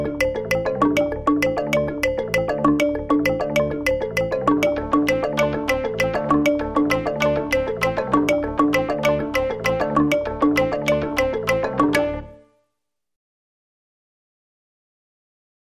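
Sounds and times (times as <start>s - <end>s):
tuned percussion: 0.0s - 12.3s.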